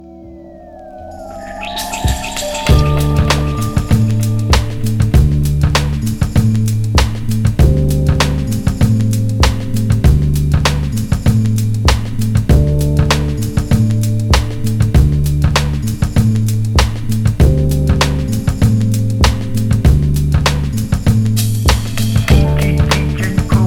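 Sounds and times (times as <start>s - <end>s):
ocean beat: 0.0s - 23.6s.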